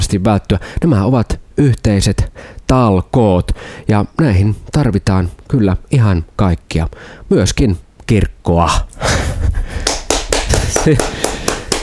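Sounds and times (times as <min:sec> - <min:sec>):
speech: 0:00.1 - 0:09.9, 0:10.8 - 0:11.2
polite slow academic-style handclaps: 0:09.8 - 0:11.8.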